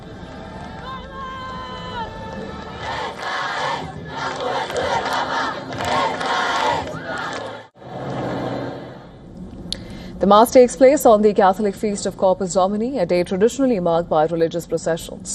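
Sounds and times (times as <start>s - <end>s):
crowd cheering and shouting as the Pope arrives in his Pope Mobile: 0.0s - 9.0s
speech: 10.2s - 15.3s.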